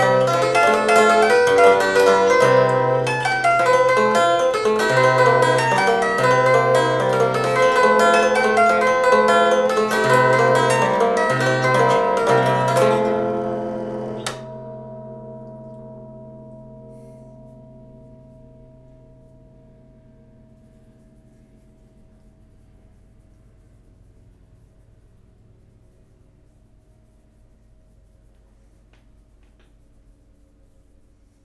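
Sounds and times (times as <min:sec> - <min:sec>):
1904 German automatic zither playing: 0:00.0 - 0:17.1.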